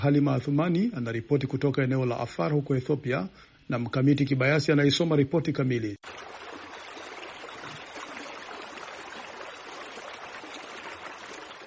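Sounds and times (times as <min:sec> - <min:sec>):
speech: 0:00.0 - 0:06.4
dirty stream of the Awash River rushing in Ethiopia's Afar region: 0:06.0 - 0:11.6.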